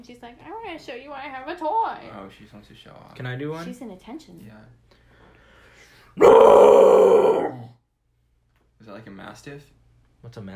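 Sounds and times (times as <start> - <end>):
speech: 0.0 - 5.0, 6.2 - 7.8, 8.8 - 10.5
person growling in imitation of a bear: 6.2 - 7.7.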